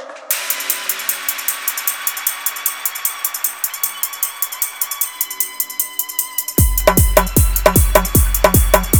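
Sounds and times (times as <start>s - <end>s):
hard bass music mix: 0.3s - 8.9s.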